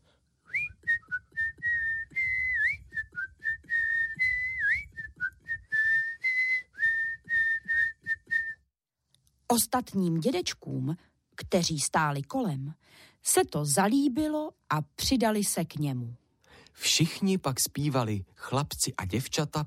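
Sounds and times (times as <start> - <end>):
person whistling a song tune: 0.4 - 8.7
speech: 9.5 - 16.2, 16.8 - 19.6.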